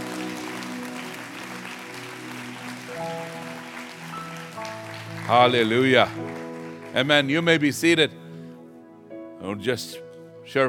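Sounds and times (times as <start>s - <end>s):
crowd clapping: 0.0s - 8.0s
speech: 5.3s - 6.3s, 6.9s - 8.2s, 9.5s - 10.6s.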